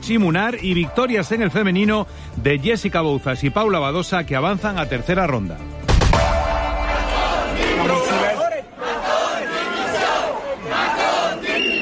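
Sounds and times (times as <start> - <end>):
speech: 0.0 - 5.8
large protest crowd chanting and shouting for a resignation: 6.4 - 11.7.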